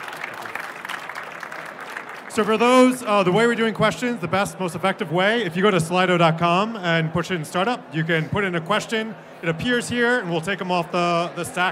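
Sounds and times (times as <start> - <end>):
audience round of applause: 0.0 - 3.0
speech: 2.4 - 11.7.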